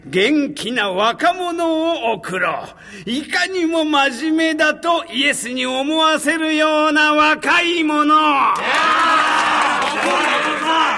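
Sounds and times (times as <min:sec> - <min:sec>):
speech: 0:00.1 - 0:09.2
crowd cheering: 0:08.5 - 0:10.9
applause: 0:08.6 - 0:10.9.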